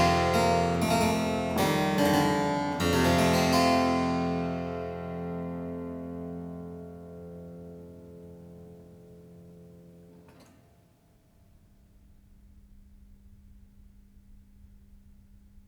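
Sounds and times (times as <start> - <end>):
harpsichord prelude: 0.0 - 7.7.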